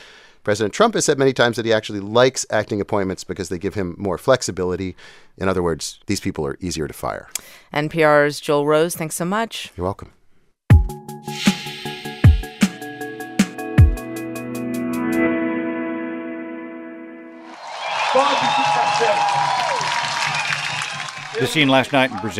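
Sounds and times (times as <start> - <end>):
speech: 0.4 - 10.2, 21.4 - 22.3
sharp musical hits over a chord: 10.7 - 17.2
crowd cheering and shouting: 17.4 - 22.3.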